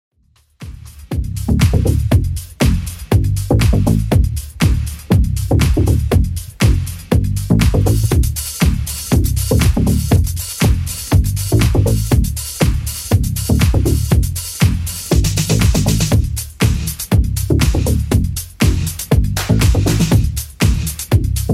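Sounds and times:
80s drum machine beat at 120 bpm: 0:00.2 - 0:21.5.

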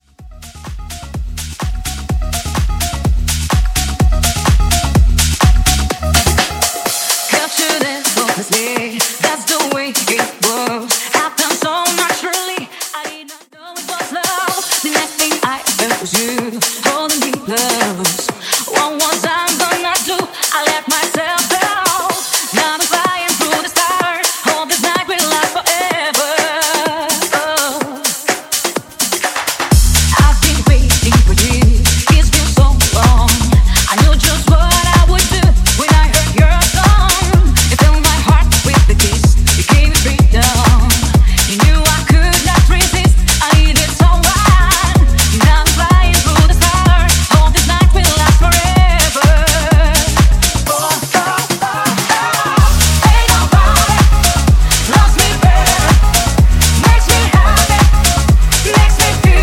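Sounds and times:
funky house music mix: 0:00.0 - 0:59.4.

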